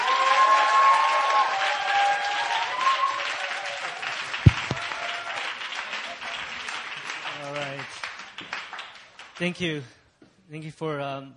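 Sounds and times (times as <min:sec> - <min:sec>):
church audience applause welcoming a pastor: 0:00.0 - 0:09.4
sharp knocks: 0:04.5 - 0:04.8
speech: 0:09.4 - 0:11.3.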